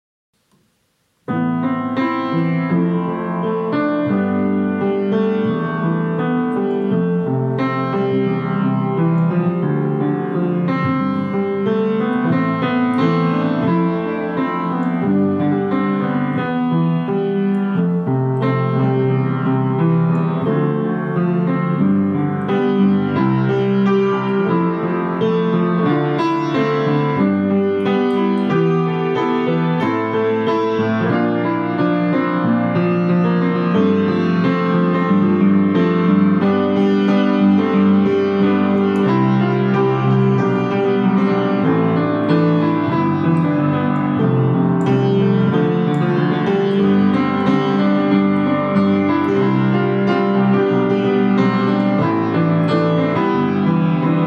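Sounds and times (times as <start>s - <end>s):
emotional piano: 0.4s - 54.2s.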